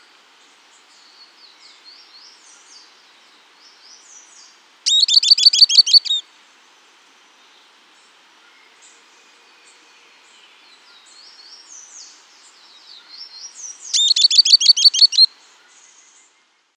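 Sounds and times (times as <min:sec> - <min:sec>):
bird chattering: 0:04.9 - 0:06.2, 0:14.0 - 0:15.3.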